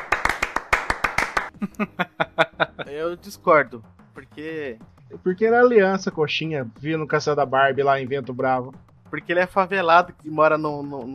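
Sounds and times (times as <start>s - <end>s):
person clapping: 0.0s - 1.9s
laughter: 1.4s - 3.2s
speech: 1.8s - 2.2s, 2.9s - 11.1s.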